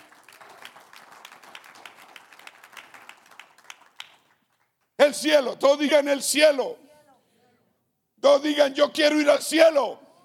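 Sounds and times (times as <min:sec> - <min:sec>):
audience applause: 0:00.0 - 0:04.4
speech: 0:05.1 - 0:06.8, 0:08.3 - 0:10.0.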